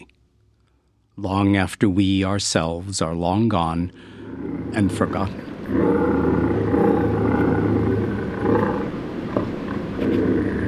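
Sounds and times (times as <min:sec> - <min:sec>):
speech: 0:01.2 - 0:04.1, 0:04.7 - 0:06.4
bobcat growling and yowling: 0:04.1 - 0:10.6.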